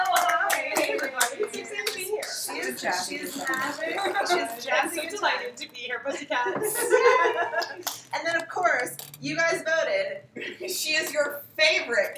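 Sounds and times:
audience clapping for a comedian guest on a comedy show: 0:00.0 - 0:02.8
speech: 0:02.8 - 0:12.1
laughter: 0:06.1 - 0:08.0.

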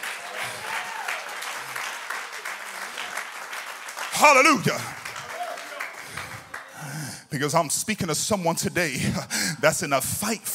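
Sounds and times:
crowd clapping: 0:00.0 - 0:07.2
speech: 0:04.2 - 0:05.0, 0:07.3 - 0:10.5.

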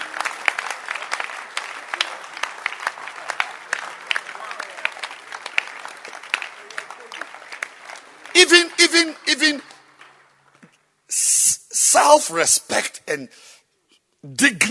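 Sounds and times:
audience at a church ministry gathering clapping: 0:00.0 - 0:10.6
speech: 0:08.4 - 0:09.7, 0:12.0 - 0:13.5, 0:14.2 - 0:14.7.

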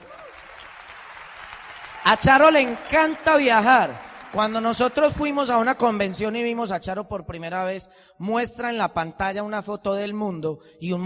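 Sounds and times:
audience applause: 0:00.0 - 0:06.2
speech: 0:02.1 - 0:11.0.

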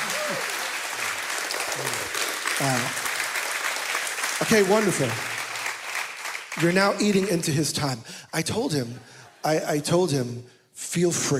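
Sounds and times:
church audience applause: 0:00.0 - 0:07.4
speech: 0:02.6 - 0:03.0, 0:04.4 - 0:05.3, 0:06.6 - 0:11.3.

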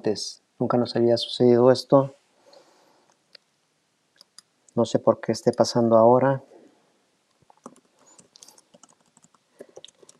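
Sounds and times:
speech: 0:00.0 - 0:02.2, 0:04.8 - 0:06.5
typing a message on a device: 0:07.5 - 0:10.1.

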